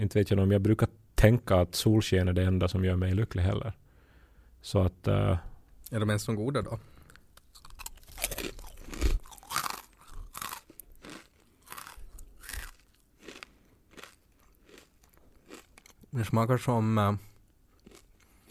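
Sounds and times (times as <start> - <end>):
speech: 0.0 - 3.8, 4.6 - 6.9, 16.1 - 17.3
crunching on stale ice cream wafer biscuits: 7.0 - 18.5.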